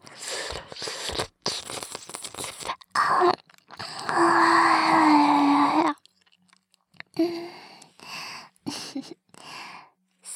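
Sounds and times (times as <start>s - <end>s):
ASMR ear licking sounds: 0.2s - 8.0s.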